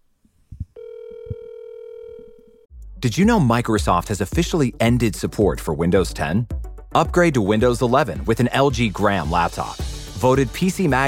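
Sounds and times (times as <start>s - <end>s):
telephone call ringing tone: 0.8s - 2.7s
speech: 3.0s - 11.0s.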